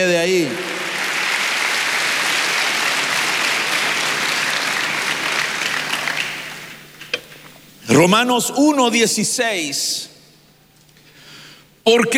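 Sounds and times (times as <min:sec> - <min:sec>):
speech: 0:00.0 - 0:00.7, 0:07.9 - 0:10.1, 0:11.9 - 0:12.1
audience applause: 0:00.0 - 0:06.8.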